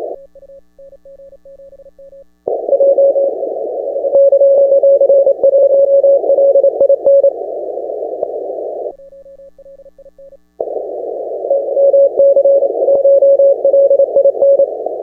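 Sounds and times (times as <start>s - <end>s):
CW Morse code on 10 metre amateur radio: 2.5s - 7.4s, 10.6s - 15.0s.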